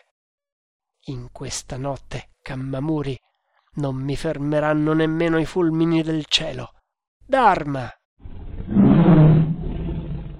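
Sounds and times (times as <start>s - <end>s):
speech: 1.0s - 8.0s
tiger growling as it gets up from a crouch: 8.2s - 10.3s.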